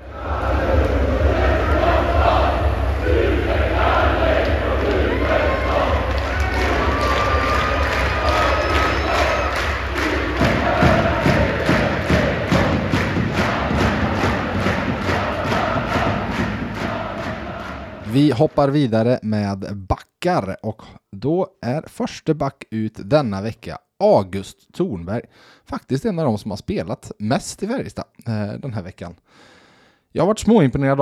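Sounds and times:
dense crowd of football supporters chanting: 0.0s - 18.3s
rhythmic clapping or thumping: 0.4s - 18.3s
speech: 18.4s - 29.5s, 30.1s - 31.0s.

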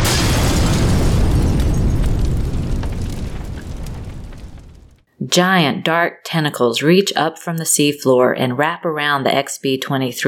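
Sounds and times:
hunter-seeker torpedo exploding at a ship: 0.0s - 5.1s
speech: 5.3s - 10.2s.

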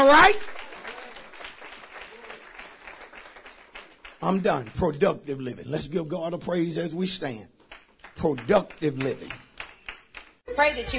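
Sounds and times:
speech: 0.0s - 0.5s, 4.2s - 7.5s, 8.2s - 9.4s, 10.5s - 10.9s
audience applauding: 0.0s - 5.5s, 7.2s - 10.4s.

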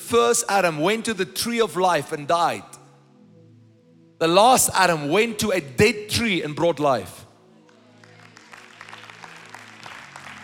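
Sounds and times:
speech: 0.1s - 2.8s, 4.2s - 7.2s
light scattered applause from a small crowd: 7.6s - 10.4s.

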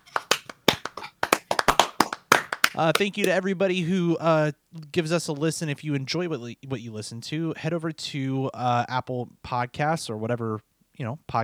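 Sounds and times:
hosts clapping hands: 0.0s - 3.4s
speech: 2.8s - 11.4s.

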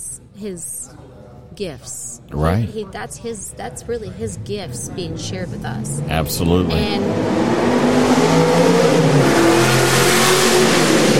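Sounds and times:
speech: 0.4s - 9.3s
Ford Mustang hot rod engine revving while driving past: 4.7s - 11.1s.

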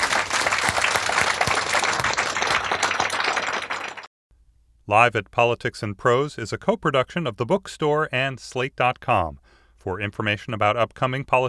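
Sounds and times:
audience applause: 0.0s - 4.1s
speech: 4.9s - 11.4s.

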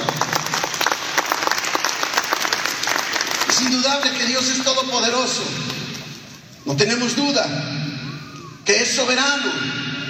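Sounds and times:
crowd applause: 0.0s - 4.6s
speech: 3.6s - 5.8s, 6.7s - 7.8s, 8.7s - 9.8s.

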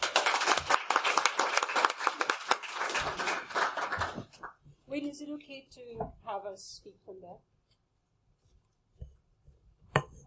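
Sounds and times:
audience applause welcoming speakers to the podium at an academic panel: 0.0s - 4.5s
speech: 5.2s - 7.6s.

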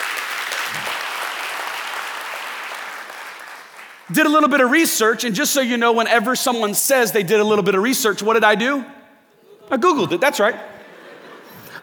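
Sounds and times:
audience clapping: 0.0s - 4.6s
speech: 4.1s - 9.0s, 9.7s - 10.7s
laughter: 9.4s - 11.8s.

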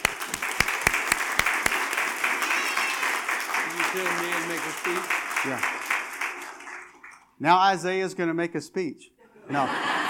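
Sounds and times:
audience applause at a church gathering: 0.0s - 7.4s
speech: 4.0s - 5.9s, 7.4s - 9.9s
laughter: 9.2s - 10.0s.

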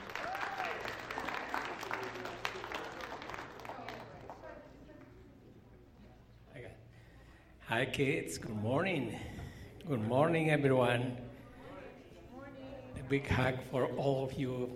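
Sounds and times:
church congregation clapping to welcome a pastor: 0.0s - 4.6s
speech: 7.7s - 11.2s, 13.1s - 14.7s.

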